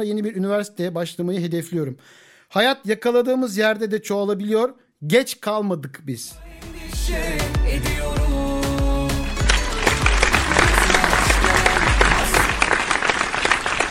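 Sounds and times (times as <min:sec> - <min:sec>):
speech: 0:00.0 - 0:08.2
rhythmic music with steady beats: 0:06.3 - 0:13.3
audience applause: 0:09.4 - 0:13.8.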